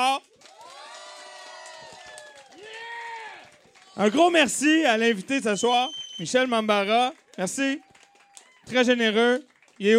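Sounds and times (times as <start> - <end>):
audience applause: 0.3 - 5.3, 6.7 - 9.9
crowd cheering and whooping: 0.4 - 4.2, 7.7 - 8.7
long rising-and-falling shouts: 0.6 - 4.2
speech: 4.0 - 7.9, 8.7 - 9.9.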